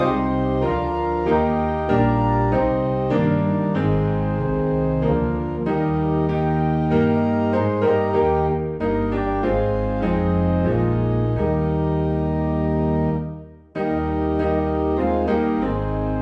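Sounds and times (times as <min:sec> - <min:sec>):
hymn on organ: 0:00.0 - 0:16.2
piano: 0:00.0 - 0:16.2.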